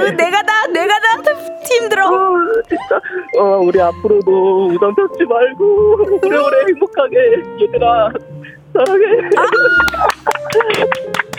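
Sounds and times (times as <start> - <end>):
speech: 0.1 - 0.6, 1.8 - 11.3
laughter: 5.9 - 11.3
small group clapping hands: 8.8 - 11.3.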